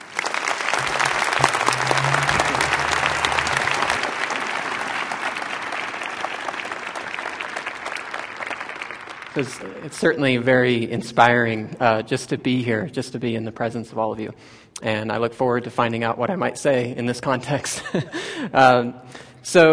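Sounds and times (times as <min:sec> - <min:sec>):
audience applause welcoming a speaker at a university teaching event: 0:00.0 - 0:09.8
speech: 0:09.4 - 0:19.7.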